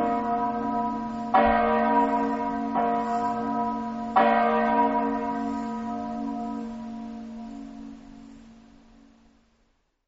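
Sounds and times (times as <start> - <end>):
bells: 0.0 - 9.6.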